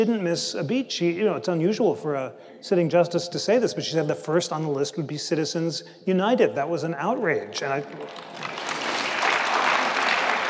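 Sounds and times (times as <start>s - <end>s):
speech: 0.0s - 8.6s
audience applause at a political talk: 7.9s - 10.4s.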